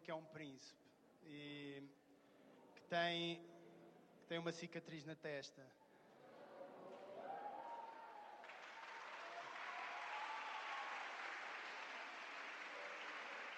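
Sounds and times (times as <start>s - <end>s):
speech: 0.0s - 2.0s, 2.8s - 3.6s, 4.3s - 5.8s
audience applauding: 6.9s - 13.5s.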